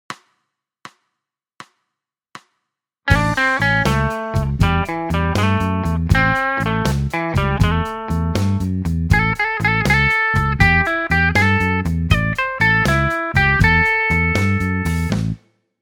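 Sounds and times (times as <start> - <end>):
blues music: 3.1 - 15.4.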